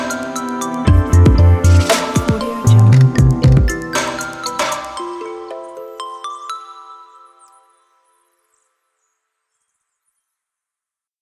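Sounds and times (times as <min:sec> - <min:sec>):
modern fresh music buildup: 0:00.9 - 0:05.0.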